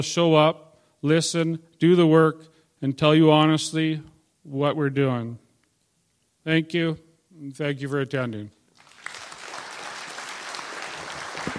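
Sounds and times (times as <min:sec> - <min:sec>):
speech: 0:00.0 - 0:05.4, 0:06.4 - 0:08.6
crowd applauding: 0:08.8 - 0:11.5.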